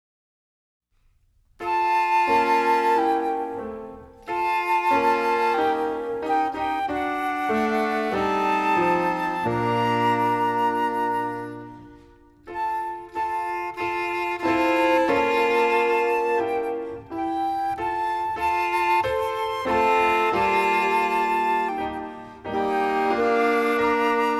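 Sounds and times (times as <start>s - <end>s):
instrumental music: 1.0s - 24.3s.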